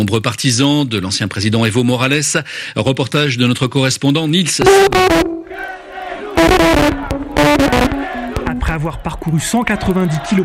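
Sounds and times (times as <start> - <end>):
speech: 0.0 - 5.2, 8.8 - 10.4
crowd of protest marchers chanting: 5.4 - 8.5.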